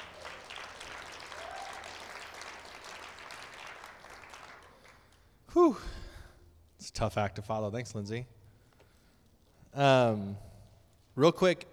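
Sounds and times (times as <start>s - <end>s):
audience applause: 0.0s - 5.4s
speech: 5.5s - 6.0s, 6.9s - 8.4s, 9.8s - 10.5s, 11.2s - 11.7s.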